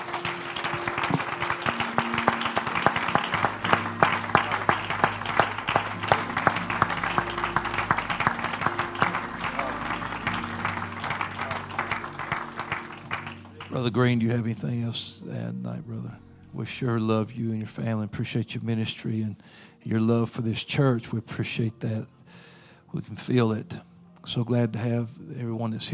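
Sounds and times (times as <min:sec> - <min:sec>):
audience hand clapping in praise: 0:00.0 - 0:14.4
organ or keyboard chords: 0:00.0 - 0:22.2
speech: 0:13.8 - 0:15.9, 0:16.6 - 0:22.2, 0:22.9 - 0:25.9.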